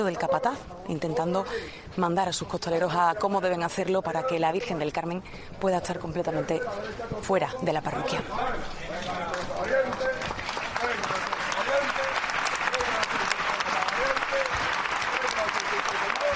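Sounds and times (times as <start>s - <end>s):
speech: 0.0s - 10.1s
street crowd applauding on calle Feria for the Virgen del Carmen: 8.9s - 16.3s.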